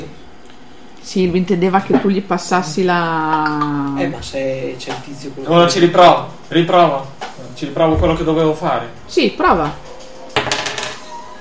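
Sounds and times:
speech: 1.1 - 9.8
dice rolling on table: 10.4 - 11.0.

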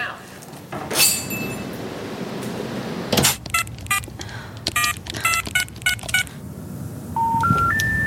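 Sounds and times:
low hum: 0.0 - 8.0
telephone number dialed as tonal beeps: 4.7 - 6.3, 7.2 - 8.0.

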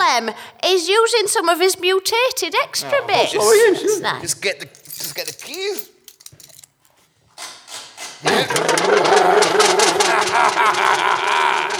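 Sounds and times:
speech: 0.2 - 5.9, 8.2 - 11.7
laughter: 2.6 - 4.3, 8.2 - 11.7
motorbike engine revving: 8.3 - 11.7.

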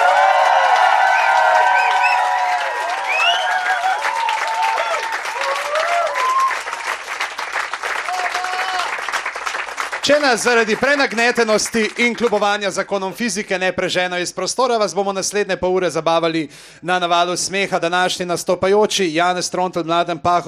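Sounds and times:
audience applause and cheering: 0.0 - 12.6
speech: 10.1 - 20.4.

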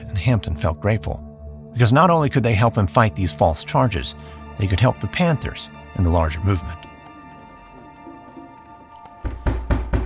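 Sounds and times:
speech: 0.2 - 6.9
heavy knocking on a door: 9.2 - 10.0.

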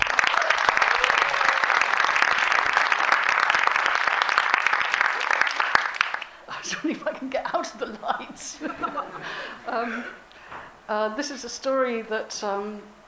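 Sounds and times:
audience applause: 0.0 - 6.7
laughter: 6.5 - 10.2
speech: 6.8 - 10.2, 10.9 - 13.0.

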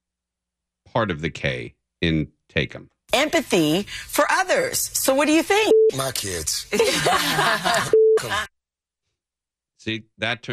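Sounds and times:
speech: 0.9 - 8.5, 9.8 - 10.5
censor bleep tone: 5.7 - 6.0, 7.9 - 8.3
laughter: 6.7 - 8.5.

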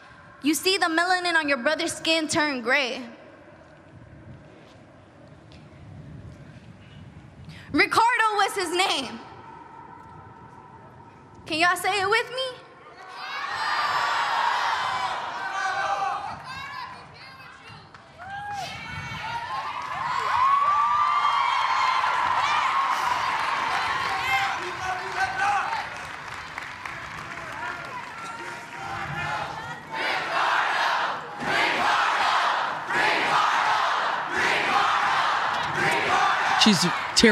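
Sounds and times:
speech: 0.4 - 3.2, 7.7 - 9.3, 11.5 - 12.6, 36.7 - 37.2
crowd cheering: 12.9 - 17.0, 18.2 - 37.2.

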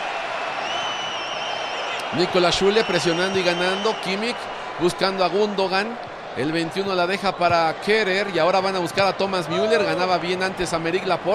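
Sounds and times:
Spanish fans cheering in a stadium: 0.0 - 11.3
speech: 2.1 - 11.3.

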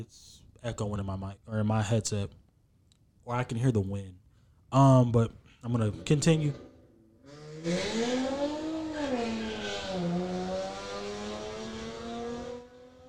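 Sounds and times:
speech: 0.0 - 2.4, 3.2 - 6.7, 7.6 - 8.6
car engine revving loudly outside: 7.2 - 13.0.

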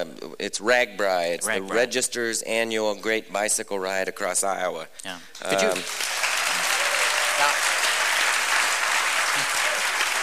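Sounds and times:
speech: 0.4 - 6.1
audience applauding: 5.5 - 10.2.

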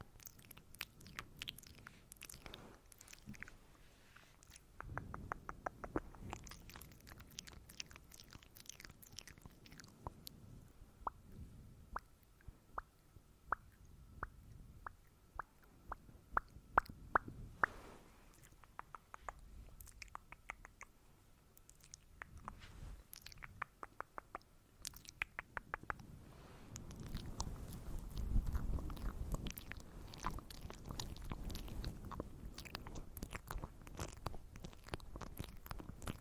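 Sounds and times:
wet mouth clicks and smacks: 0.0 - 3.6, 4.2 - 10.4, 12.0 - 17.7, 18.3 - 21.0, 21.6 - 26.0, 26.8 - 36.1
soft rustling from hand movements: 1.8 - 5.4, 17.3 - 20.0, 21.1 - 23.2, 26.0 - 36.1.

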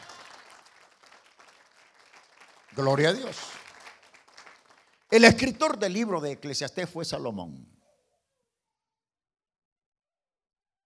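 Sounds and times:
audience applause: 0.0 - 5.7
speech: 2.7 - 3.6, 5.1 - 7.8.

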